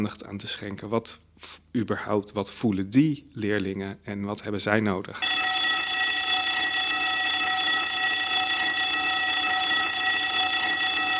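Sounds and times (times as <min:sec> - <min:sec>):
speech: 0:00.0 - 0:05.4
school bell ringing: 0:05.2 - 0:11.1.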